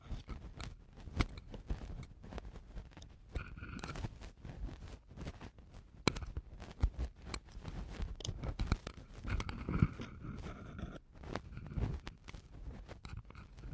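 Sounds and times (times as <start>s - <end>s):
eardrum cleaning crackles and scratches: 0.2s - 13.7s.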